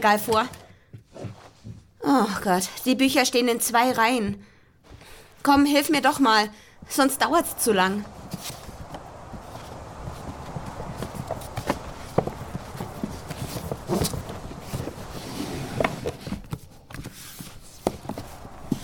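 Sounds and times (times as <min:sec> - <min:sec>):
speech: 0:00.0 - 0:00.6, 0:02.1 - 0:04.5, 0:05.4 - 0:08.6
footsteps climbing a staircase: 0:00.4 - 0:02.0, 0:08.0 - 0:18.8.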